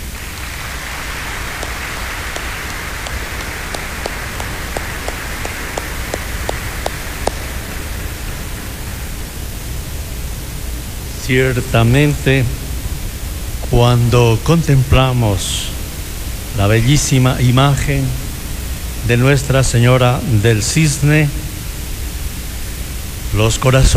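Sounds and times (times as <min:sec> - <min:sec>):
audience applauding: 0:00.0 - 0:09.0
speech: 0:11.3 - 0:12.6, 0:13.7 - 0:15.8, 0:16.6 - 0:18.2, 0:19.0 - 0:21.4, 0:23.4 - 0:23.9.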